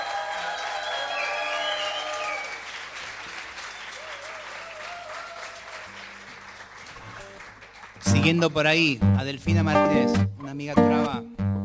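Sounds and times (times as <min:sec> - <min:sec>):
applause: 0:00.0 - 0:08.9
speech: 0:08.1 - 0:11.3.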